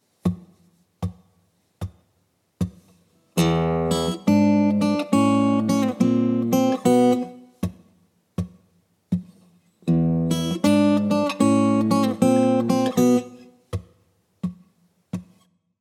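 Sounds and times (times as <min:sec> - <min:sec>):
blues guitar turnaround: 0:02.6 - 0:07.8, 0:09.1 - 0:13.8.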